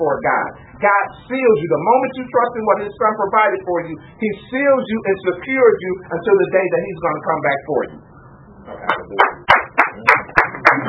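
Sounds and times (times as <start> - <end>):
speech: 0.0 - 8.1, 8.7 - 9.3
hand clapping: 8.8 - 10.8.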